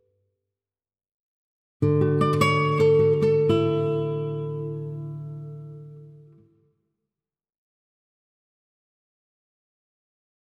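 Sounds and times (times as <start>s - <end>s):
guitar melody: 1.8s - 6.4s.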